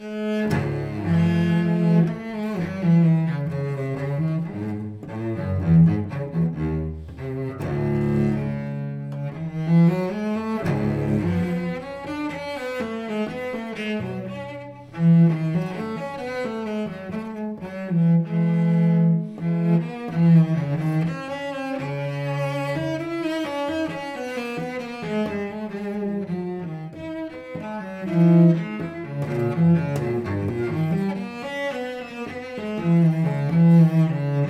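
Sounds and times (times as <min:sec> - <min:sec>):
allemande from a suite: 0:00.1 - 0:34.4.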